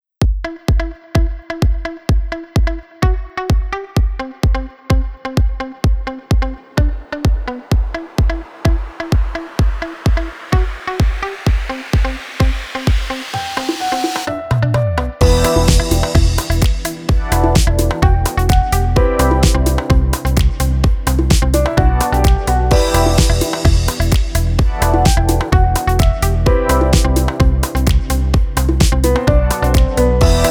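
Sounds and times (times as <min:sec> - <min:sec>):
80s retro house music: 0:00.4 - 0:30.4.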